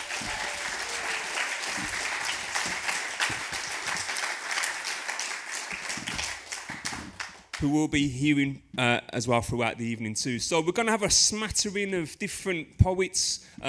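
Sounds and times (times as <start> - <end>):
round of applause: 0.0 - 7.6
speech: 7.6 - 13.6.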